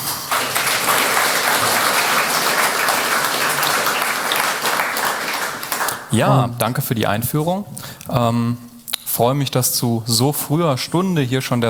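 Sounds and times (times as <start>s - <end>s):
audience applause: 0.0s - 6.2s
speech: 6.1s - 11.6s.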